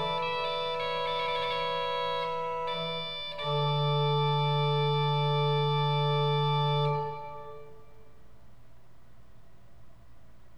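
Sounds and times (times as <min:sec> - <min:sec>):
organ fugue: 0:00.0 - 0:08.2.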